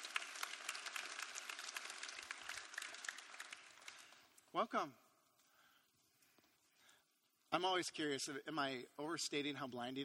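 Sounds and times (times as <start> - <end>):
audience applause for invited guests coming up on stage: 0.0 - 4.2
speech: 4.5 - 5.0, 7.5 - 10.0.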